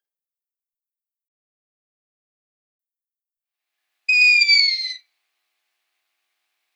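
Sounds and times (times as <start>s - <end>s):
long-eared owl squeaky descending call: 4.1s - 5.0s.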